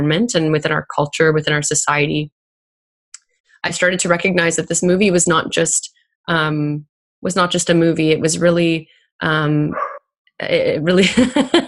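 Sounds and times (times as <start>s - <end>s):
speech: 0.0s - 2.4s, 3.6s - 11.6s
dog barking: 9.7s - 10.0s.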